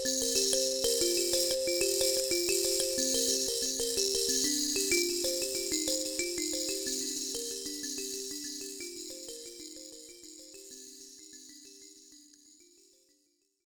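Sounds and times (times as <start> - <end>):
kalimba: 0.0 - 12.8.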